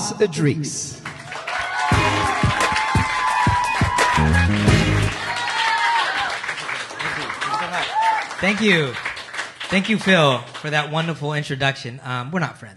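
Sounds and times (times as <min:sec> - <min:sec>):
speech: 0:00.1 - 0:01.2, 0:08.4 - 0:09.1, 0:09.7 - 0:12.7
comedy show audience applause and cheering welcoming a comedian on stage: 0:01.0 - 0:10.6.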